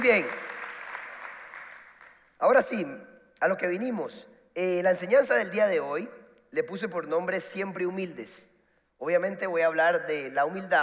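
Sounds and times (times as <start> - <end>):
speech: 0.0 - 0.4, 2.4 - 10.8
audience applause: 0.0 - 2.2.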